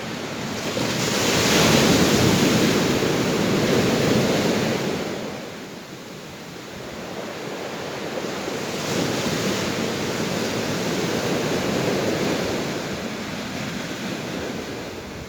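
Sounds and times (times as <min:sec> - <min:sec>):
ocean waves: 0:00.0 - 0:15.2.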